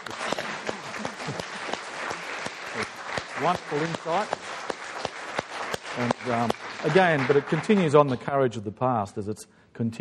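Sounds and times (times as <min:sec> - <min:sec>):
audience applauding the panel: 0:00.0 - 0:08.4
speech: 0:03.4 - 0:04.4, 0:06.0 - 0:09.9.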